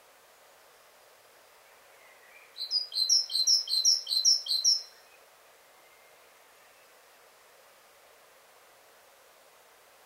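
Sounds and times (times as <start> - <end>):
faint background hiss: 0.0 - 10.0
great tit chirping: 2.6 - 4.9.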